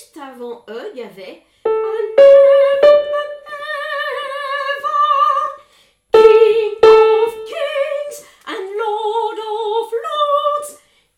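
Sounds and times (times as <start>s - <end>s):
soprano singing: 1.7s - 5.5s, 6.2s - 10.6s.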